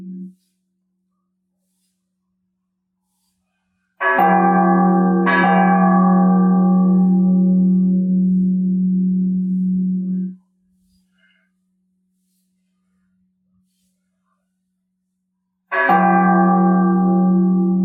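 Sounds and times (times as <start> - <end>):
bell: 4.0 - 10.4, 15.7 - 17.8.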